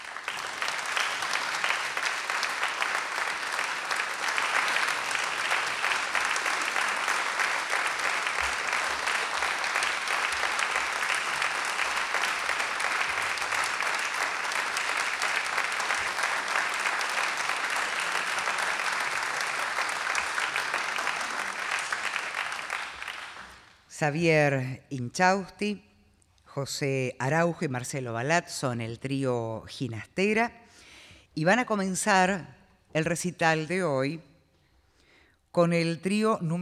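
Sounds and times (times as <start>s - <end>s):
audience applause: 0.0s - 23.8s
speech: 24.0s - 25.9s, 26.6s - 30.8s, 31.4s - 34.3s, 35.6s - 36.6s.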